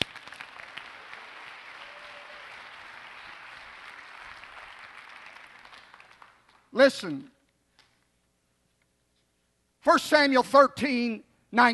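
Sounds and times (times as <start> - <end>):
audience applauding in praise: 0.0 - 6.7
speech: 6.7 - 7.3, 9.9 - 11.7.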